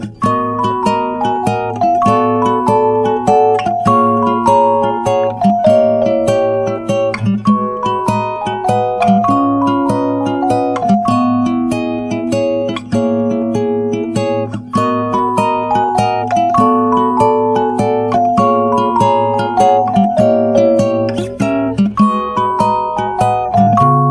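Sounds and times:
jingle: 0.2s - 24.1s.

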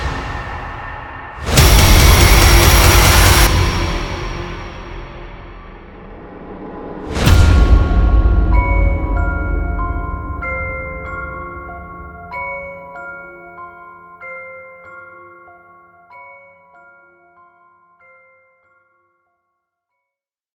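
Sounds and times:
epic intense creepy horror music: 0.0s - 14.2s.

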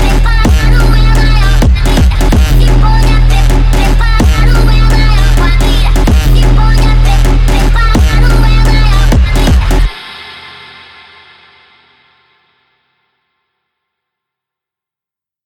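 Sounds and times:
Brazilian phonk music: 0.0s - 10.9s.

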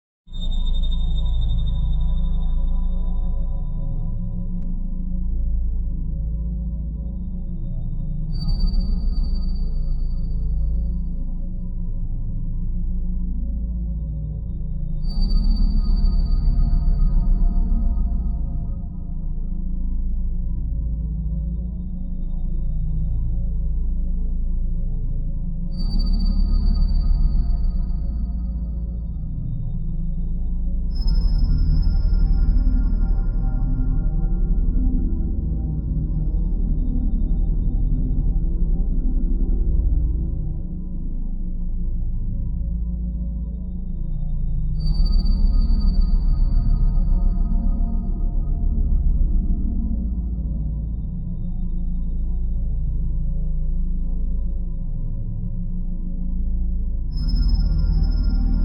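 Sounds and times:
suspenseful horror theme music: 0.4s - 58.6s.

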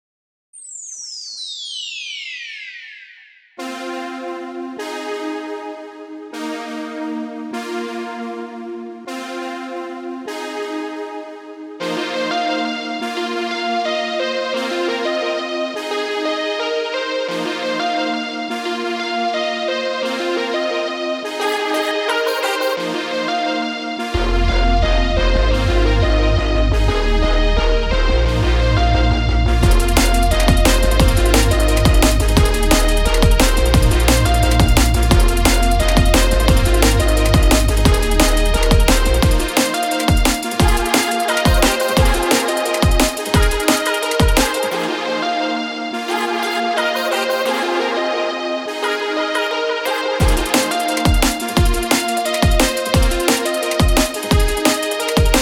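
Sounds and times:
beat music: 11.8s - 55.3s.

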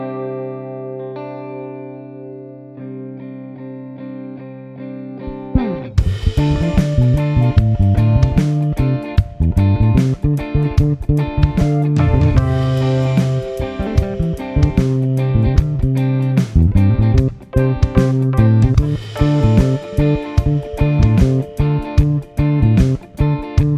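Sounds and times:
gaita reggae music: 5.6s - 23.7s.

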